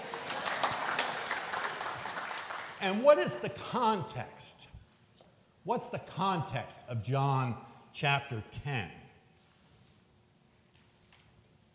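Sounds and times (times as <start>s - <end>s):
group applause for a woman who read a passage: 0.0s - 3.1s
speech: 2.8s - 4.5s, 5.6s - 9.0s.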